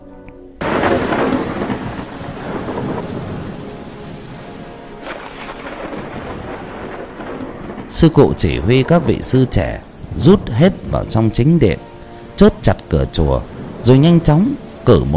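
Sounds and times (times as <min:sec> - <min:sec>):
thunder: 0:00.6 - 0:11.2, 0:13.5 - 0:14.0
heavy rain: 0:00.6 - 0:15.1
speech: 0:08.0 - 0:15.1.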